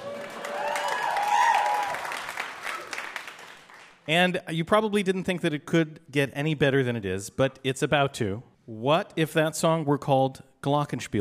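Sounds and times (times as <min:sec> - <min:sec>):
crowd clapping: 0:00.0 - 0:04.1
speech: 0:04.1 - 0:11.1.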